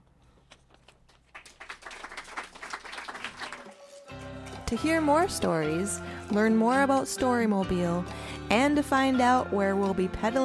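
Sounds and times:
loud clapping applause: 1.1s - 4.8s
speech: 4.7s - 10.4s.

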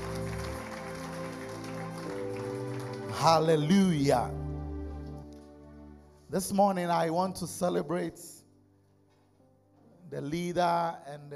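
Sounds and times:
audience clapping: 0.0s - 4.3s
sustained keyboard chords: 0.0s - 8.7s
speech: 3.2s - 4.4s, 6.3s - 8.4s, 10.1s - 11.3s.

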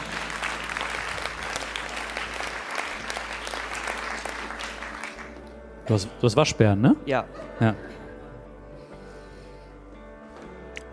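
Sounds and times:
audience applause: 0.0s - 5.5s
speech: 5.9s - 8.0s.

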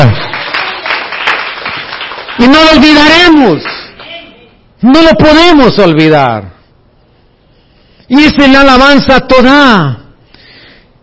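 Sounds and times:
audience applauding: 0.0s - 4.3s
speech: 2.4s - 3.8s, 4.8s - 6.5s, 8.1s - 10.0s.

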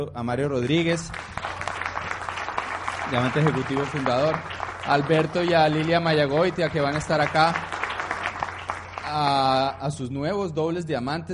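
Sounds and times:
speech: 0.0s - 1.4s, 3.1s - 7.7s, 9.1s - 11.3s
loud sustained audience applause: 1.0s - 9.8s.

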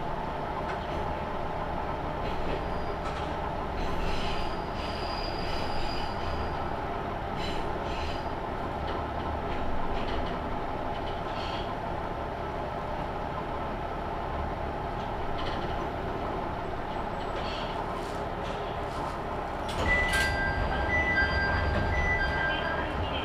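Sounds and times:
Tenryu Hamanako Railway train running along the line: 0.0s - 23.2s
metallic squeals: 4.1s - 6.6s, 19.8s - 22.9s.

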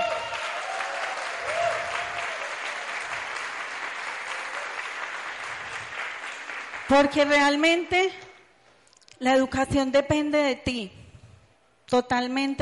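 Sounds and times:
audience applause: 0.0s - 6.9s
speech: 6.9s - 8.2s, 9.2s - 11.0s, 11.9s - 12.6s.

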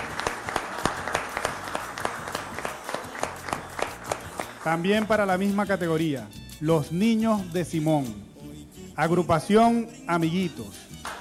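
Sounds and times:
audience applause: 0.0s - 5.1s
speech: 4.6s - 8.3s, 9.0s - 10.8s.

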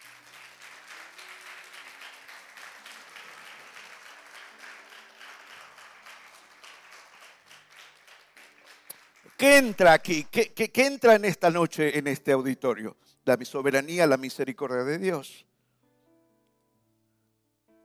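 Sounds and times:
audience applauding: 0.0s - 11.6s
speech: 9.4s - 15.5s.

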